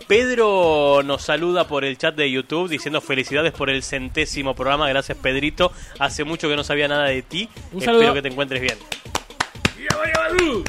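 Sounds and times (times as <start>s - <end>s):
speech: 0.1s - 9.2s
hand clapping: 8.5s - 10.6s.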